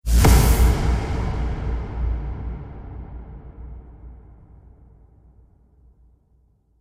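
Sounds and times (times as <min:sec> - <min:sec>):
dark cinematic hits: 0:00.1 - 0:05.5.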